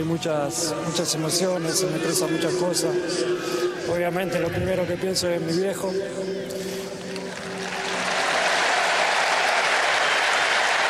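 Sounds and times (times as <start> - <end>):
speech: 0.0 - 6.8
crowd applauding: 7.1 - 10.8.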